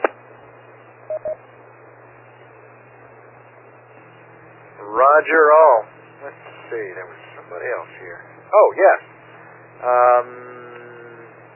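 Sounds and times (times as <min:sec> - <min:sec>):
faint steady hum and hiss on the radio channel: 0:00.0 - 0:11.5
DTMF tone beeps sent to an amateur radio repeater: 0:01.1 - 0:01.4
speech: 0:05.2 - 0:09.1, 0:09.8 - 0:10.7.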